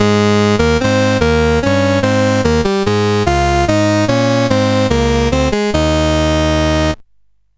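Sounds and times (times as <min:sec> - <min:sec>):
chiptune music on CSG8580R5 chip: 0:00.0 - 0:07.0.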